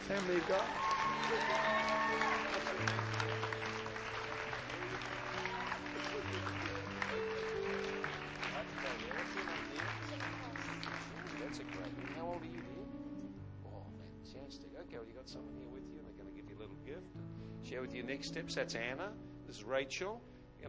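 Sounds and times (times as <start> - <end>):
church audience clapping: 0.0 - 12.8
speech: 0.1 - 3.6, 14.2 - 20.6.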